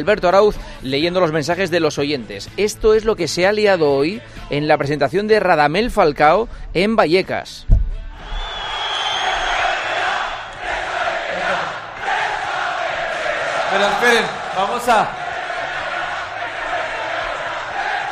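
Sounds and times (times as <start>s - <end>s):
speech: 0.0s - 7.8s, 13.7s - 15.2s
crowd shouting hostile chants: 8.2s - 18.1s.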